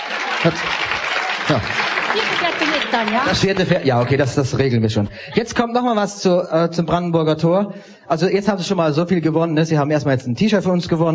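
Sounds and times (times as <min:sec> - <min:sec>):
audience applause: 0:00.0 - 0:04.8
speech: 0:00.4 - 0:00.8, 0:01.5 - 0:11.1.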